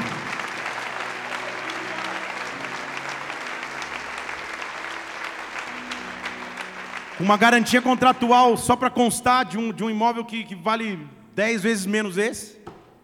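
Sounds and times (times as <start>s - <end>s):
audience clapping: 0.0s - 9.2s
speech: 7.2s - 12.6s.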